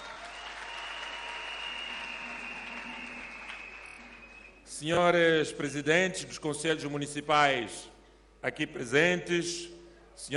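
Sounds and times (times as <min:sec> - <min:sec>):
applause: 0:00.0 - 0:04.6
speech: 0:04.8 - 0:10.3.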